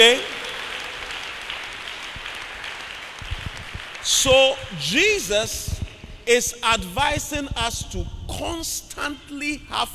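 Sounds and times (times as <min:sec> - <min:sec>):
speech: 0:00.0 - 0:00.3, 0:04.0 - 0:09.9
audience clapping: 0:00.0 - 0:05.9.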